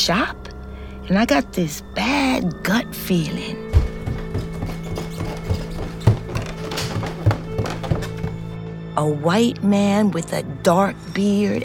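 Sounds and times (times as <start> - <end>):
speech: 0.0 - 0.4, 1.1 - 3.6, 9.0 - 11.6
shiny black men's dress shoe footsteps: 3.6 - 8.6.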